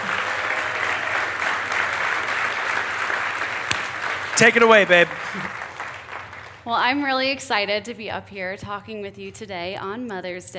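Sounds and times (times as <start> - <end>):
church congregation applauding to welcome the pastor's wife on Mother's Day: 0.0 - 6.8
speech: 4.4 - 5.6, 6.6 - 10.5.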